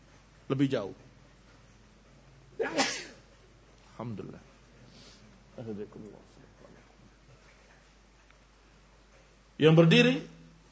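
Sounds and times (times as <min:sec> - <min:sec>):
speech: 0:00.5 - 0:01.1, 0:04.0 - 0:04.5, 0:05.6 - 0:06.4, 0:09.6 - 0:10.4
sneeze: 0:02.6 - 0:03.2.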